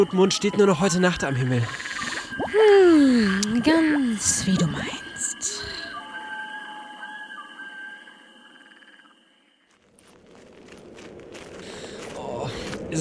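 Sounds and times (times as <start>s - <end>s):
speech: 0.0s - 5.0s
frogs croaking: 0.0s - 12.9s
footsteps of people walking on a mountain path: 9.7s - 12.9s.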